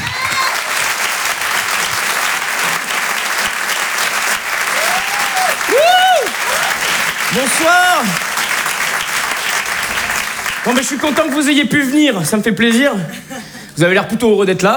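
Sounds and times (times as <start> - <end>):
audience applauding loudly: 0.0 - 11.9
whoops and whistles: 4.8 - 6.8
speech: 10.7 - 14.7.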